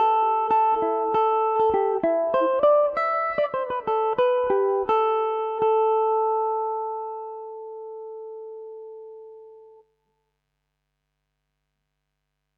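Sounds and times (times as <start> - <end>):
Irish mandolin playing a polka in A Dorian: 0.0 - 7.7.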